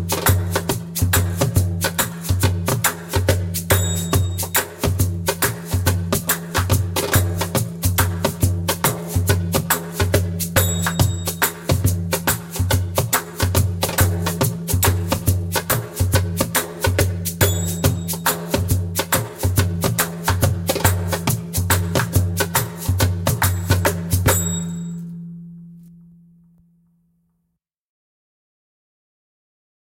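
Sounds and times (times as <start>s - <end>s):
slow darbuka second line rhythm: 0.0s - 26.3s.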